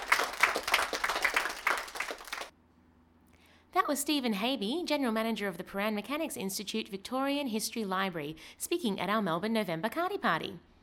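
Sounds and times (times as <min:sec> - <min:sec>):
audience applause: 0:00.0 - 0:02.5
speech: 0:03.9 - 0:10.7.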